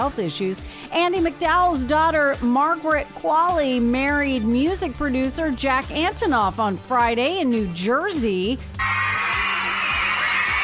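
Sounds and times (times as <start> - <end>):
speech: 0.0 - 9.0
crowd screaming outside a wedding venue: 8.8 - 10.6.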